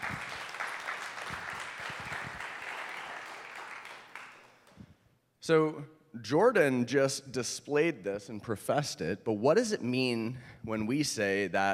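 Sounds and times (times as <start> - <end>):
audience applause: 0.0 - 4.7
speech: 5.5 - 11.7.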